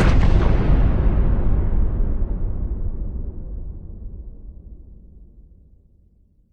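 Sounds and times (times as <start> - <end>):
artillery shell explosions: 0.0 - 3.2.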